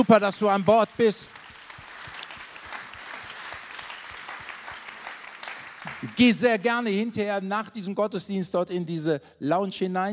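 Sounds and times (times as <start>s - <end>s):
speech: 0.0s - 1.4s, 6.2s - 10.1s
audience applause: 0.0s - 6.4s.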